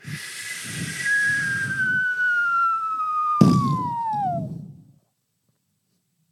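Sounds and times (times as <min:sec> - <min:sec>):
drone strike whistling tone sliding down: 0:00.0 - 0:04.8
rough rumbling hiss: 0:00.0 - 0:05.0
drone strike blast: 0:03.4 - 0:04.6.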